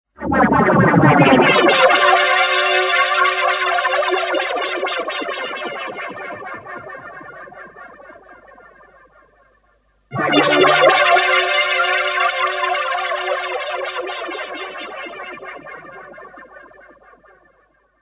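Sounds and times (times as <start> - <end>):
synth: 0.2 - 9.4, 10.1 - 17.7.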